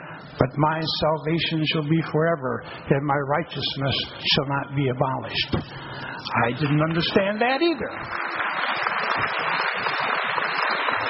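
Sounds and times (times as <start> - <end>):
speech: 0.4 - 8.4, 9.2 - 9.8
audience applause: 6.6 - 11.0.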